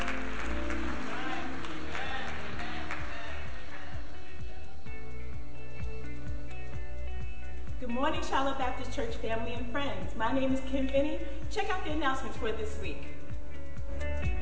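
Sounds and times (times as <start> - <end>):
audience applauding: 0.0 - 4.4
deep rhythmic thumps: 0.0 - 14.4
low instrumental hum: 0.0 - 14.4
speech: 7.9 - 13.1.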